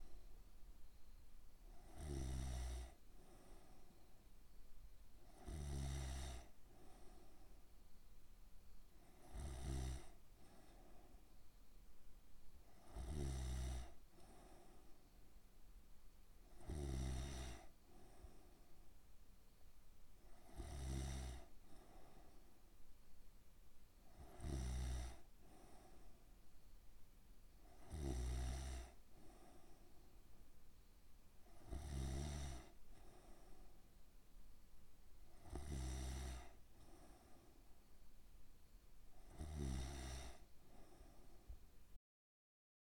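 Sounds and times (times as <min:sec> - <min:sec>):
person snoring: 0:01.7 - 0:03.8, 0:05.3 - 0:07.3, 0:09.0 - 0:10.8, 0:12.8 - 0:14.8, 0:16.5 - 0:18.2, 0:20.3 - 0:21.9, 0:24.1 - 0:26.0, 0:27.6 - 0:29.7, 0:31.5 - 0:33.5, 0:35.3 - 0:37.5, 0:39.2 - 0:41.3.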